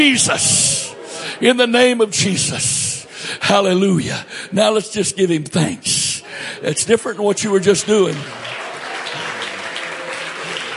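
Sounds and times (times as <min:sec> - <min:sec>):
speech: 0:00.0 - 0:00.8, 0:01.4 - 0:08.5
crowd clapping: 0:07.4 - 0:10.7.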